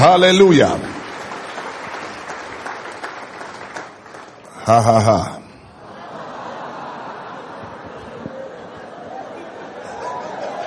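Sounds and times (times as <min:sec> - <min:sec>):
speech: 0:00.0 - 0:01.0, 0:04.7 - 0:05.4
audience applauding: 0:00.0 - 0:05.2
laughter: 0:04.5 - 0:10.6.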